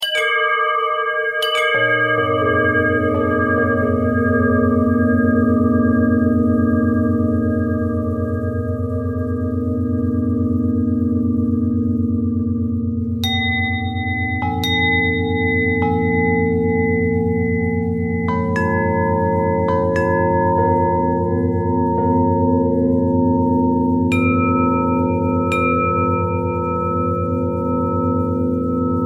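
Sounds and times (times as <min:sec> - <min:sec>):
bent and twisted bell tone: 0:00.0 - 0:29.0.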